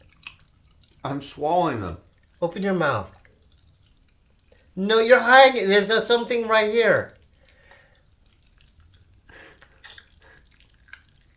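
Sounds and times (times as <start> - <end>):
Pop Rocks candy crackling in mouth: 0.0 - 5.1, 6.0 - 11.3
speech: 1.0 - 3.2, 4.8 - 7.2.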